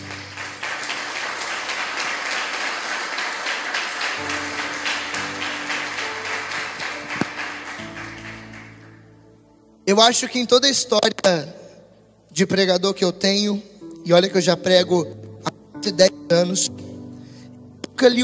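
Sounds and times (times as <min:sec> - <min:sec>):
audience clapping: 0:00.0 - 0:09.1
speech: 0:09.9 - 0:11.6, 0:12.4 - 0:15.2, 0:15.8 - 0:16.9, 0:18.0 - 0:18.2.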